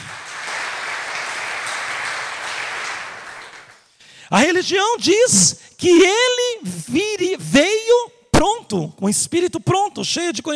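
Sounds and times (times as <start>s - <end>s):
crowd applauding: 0.0s - 3.8s
speech: 4.3s - 10.5s.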